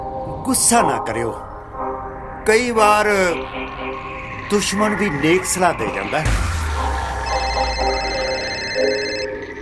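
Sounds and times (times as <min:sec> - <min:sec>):
speech: 0:00.5 - 0:01.5, 0:02.5 - 0:06.5
telephone ringing: 0:07.3 - 0:09.5.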